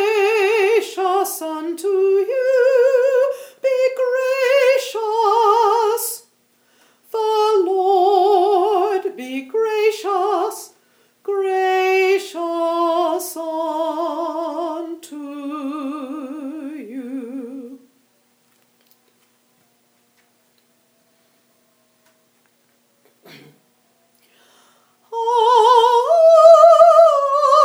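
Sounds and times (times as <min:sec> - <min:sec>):
soprano singing: 0:00.0 - 0:06.3, 0:07.1 - 0:17.9, 0:25.1 - 0:27.6.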